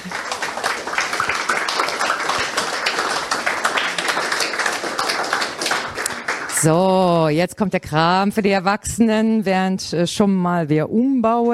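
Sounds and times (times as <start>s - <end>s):
audience applause: 0.0s - 6.7s
speech: 6.6s - 11.5s.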